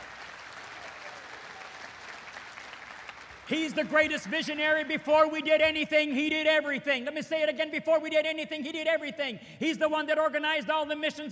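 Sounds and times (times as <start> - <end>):
audience clapping in praise: 0.0 - 5.2
speech: 3.5 - 11.3.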